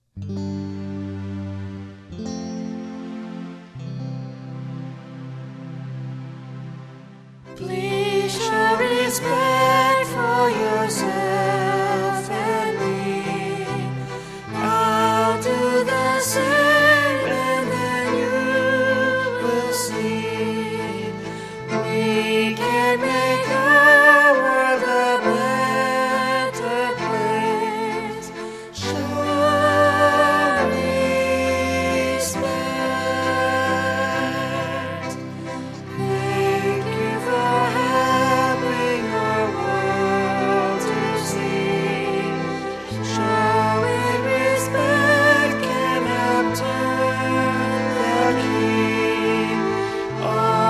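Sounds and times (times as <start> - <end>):
vocals: 2.1 - 50.6.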